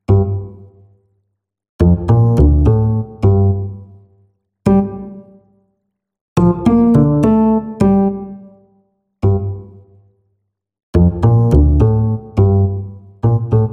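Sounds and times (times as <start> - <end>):
bass: 0.0 - 0.9, 1.8 - 5.3, 6.4 - 8.5, 9.2 - 10.0, 11.0 - 13.7.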